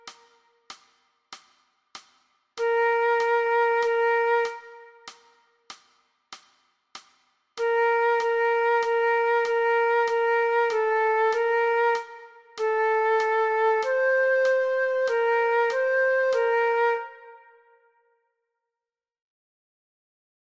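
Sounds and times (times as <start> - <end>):
flute backing track: 0.0 - 0.5, 2.6 - 5.6, 7.6 - 17.7.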